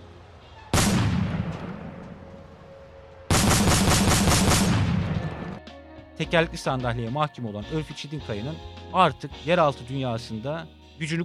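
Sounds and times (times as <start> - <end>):
police gunfire: 0.7 - 2.2, 3.3 - 5.5
speech: 6.2 - 11.2.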